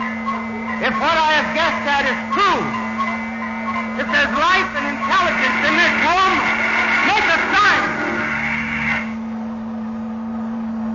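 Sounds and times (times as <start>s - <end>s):
machine humming: 0.0s - 10.9s
speech: 0.8s - 2.8s, 4.0s - 6.4s.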